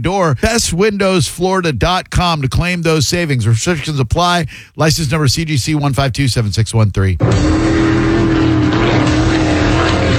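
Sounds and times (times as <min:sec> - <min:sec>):
speech: 0:00.0 - 0:08.1
offshore race boats roaring past: 0:07.2 - 0:10.1.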